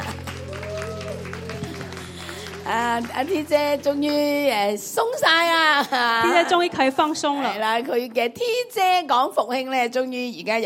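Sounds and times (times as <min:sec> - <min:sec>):
audience applause: 0:00.0 - 0:04.7
speech: 0:02.7 - 0:10.6.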